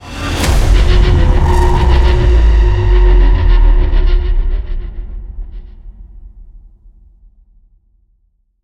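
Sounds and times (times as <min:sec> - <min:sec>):
modulated stinger: 0:00.3 - 0:06.0.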